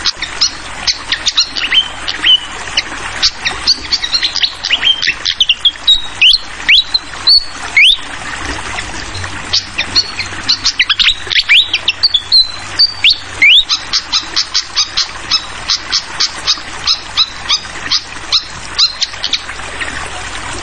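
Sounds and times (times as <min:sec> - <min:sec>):
trickling water: 0:00.0 - 0:20.6
fantail song: 0:00.1 - 0:02.5, 0:03.2 - 0:08.0, 0:09.1 - 0:19.5.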